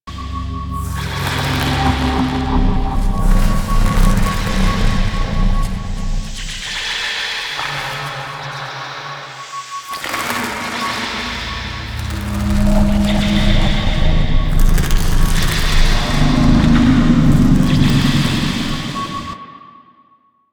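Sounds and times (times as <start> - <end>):
Orokin interior ambience loop: 0.0 - 19.7.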